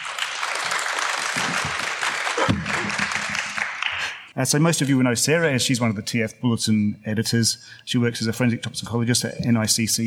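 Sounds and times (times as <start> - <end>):
audience applause welcoming special guests onto the stage: 0.0 - 4.2
speech: 4.4 - 10.0.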